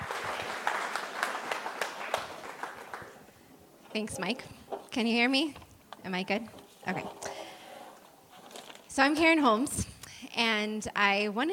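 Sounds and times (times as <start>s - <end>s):
audience applause: 0.0s - 3.4s
speech: 4.0s - 7.3s, 9.0s - 11.5s.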